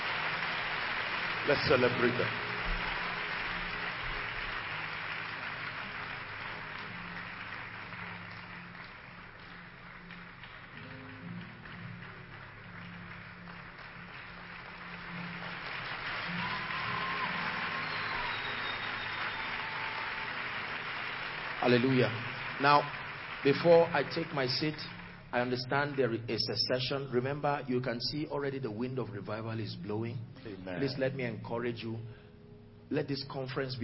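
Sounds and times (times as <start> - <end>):
church audience applause: 0.0 - 26.7
speech: 1.5 - 2.5, 21.7 - 32.2, 32.9 - 33.8.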